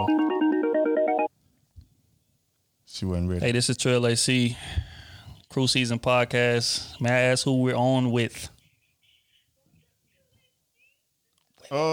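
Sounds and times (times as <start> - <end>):
phone ringing on an outgoing call: 0.0 - 1.3
speech: 3.0 - 4.9, 5.5 - 8.6, 11.7 - 11.9.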